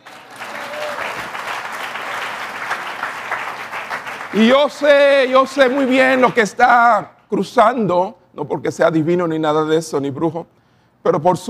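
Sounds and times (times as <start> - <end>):
audience applause: 0.0 - 6.6
speech: 4.4 - 11.4.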